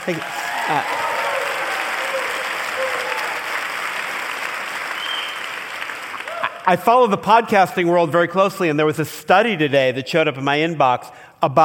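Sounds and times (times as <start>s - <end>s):
speech: 0.0s - 1.1s, 6.6s - 11.6s
large audience applause: 0.0s - 6.8s
whoops from audience: 0.2s - 3.8s, 6.2s - 6.7s.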